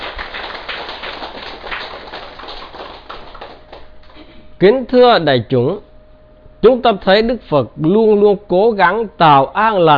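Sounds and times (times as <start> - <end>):
audience applause: 0.0 - 4.1
speech: 4.6 - 5.9, 6.6 - 9.9.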